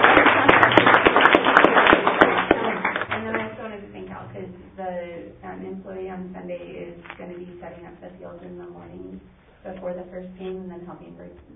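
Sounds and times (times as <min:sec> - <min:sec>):
group applause: 0:00.0 - 0:03.6
speech: 0:08.4 - 0:11.5.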